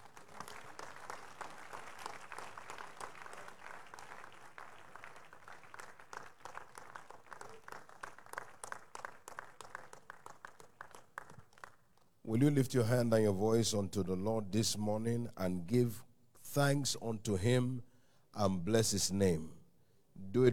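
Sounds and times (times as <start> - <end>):
audience clapping hands in praise: 0.0 - 12.2
speech: 12.3 - 19.6, 20.3 - 20.5.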